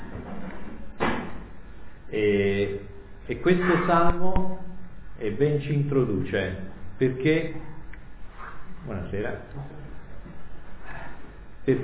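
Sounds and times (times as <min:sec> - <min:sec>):
heavy front door slamming shut: 0:01.0 - 0:01.5
speech: 0:02.1 - 0:04.6, 0:05.2 - 0:07.7, 0:08.8 - 0:09.9, 0:11.6 - 0:11.8.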